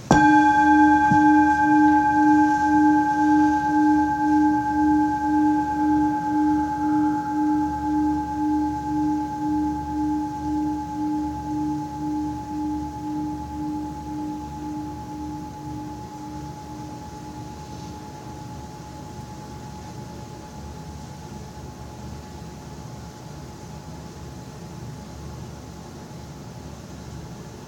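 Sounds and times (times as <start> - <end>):
bell ringing: 0.0 - 18.7.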